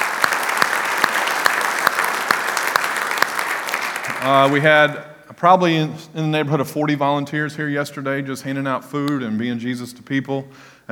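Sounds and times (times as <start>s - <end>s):
audience applause: 0.0s - 5.0s
speech: 4.2s - 10.9s.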